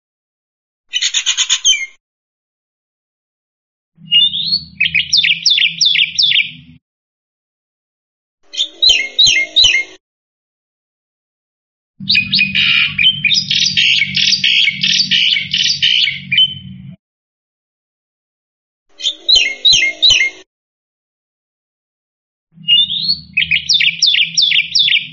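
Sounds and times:
black-winged myna chirping: 0.9 - 2.0, 4.0 - 6.6, 8.5 - 10.0, 12.0 - 16.7, 19.0 - 20.4, 22.6 - 25.1.

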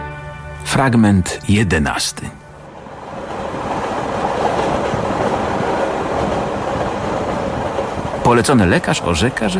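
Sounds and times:
speech: 0.7 - 2.4, 8.3 - 9.5
train from Paris to Perpignan rumbling on rails: 0.7 - 9.5
train wheels clattering rhythmically: 2.5 - 9.5.

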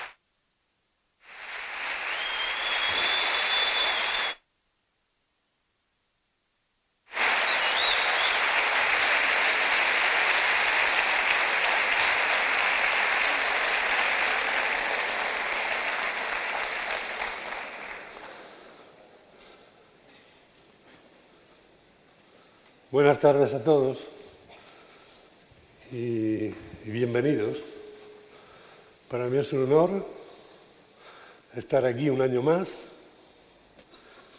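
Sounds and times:
congress audience applause welcoming a speaker: 1.2 - 4.4, 7.1 - 18.9
speech: 23.0 - 24.2, 26.8 - 27.7, 29.1 - 30.3, 31.6 - 32.9.

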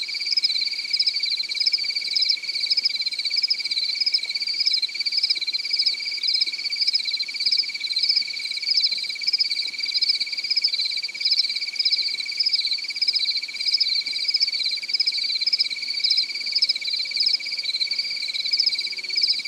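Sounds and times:
cricket giving a pulsed trill: 0.2 - 19.4.

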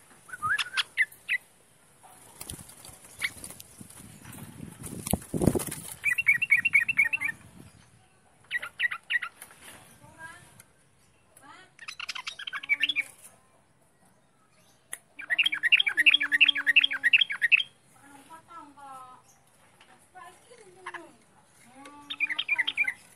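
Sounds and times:
bird chattering song: 0.2 - 1.5, 2.4 - 4.5, 5.3 - 9.4, 11.1 - 13.3, 14.6 - 17.8, 21.9 - 23.1.

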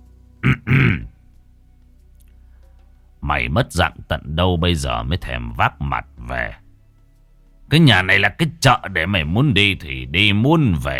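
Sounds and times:
person coughing: 0.4 - 1.1
speech: 3.3 - 6.6, 7.7 - 10.9.

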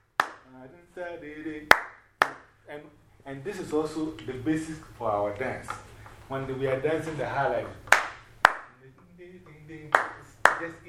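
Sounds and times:
hand claps marking a Ghanaian highlife rhythm: 0.1 - 0.5, 1.7 - 2.5, 7.6 - 8.8, 9.5 - 10.8
speech: 0.5 - 2.0, 2.7 - 7.9, 9.3 - 10.8.

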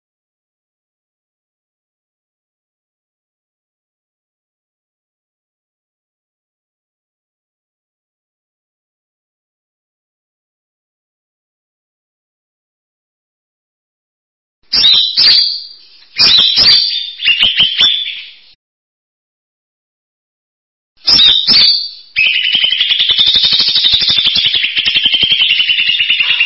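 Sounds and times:
bird song: 14.6 - 18.6, 21.0 - 26.4.

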